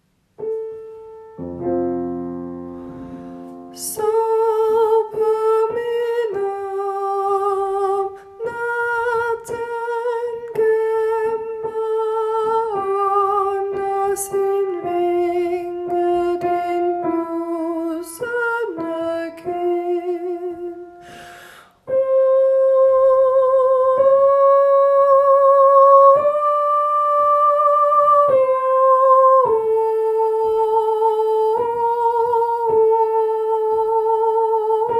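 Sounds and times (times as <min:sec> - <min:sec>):
soprano singing: 0:00.4 - 0:34.9.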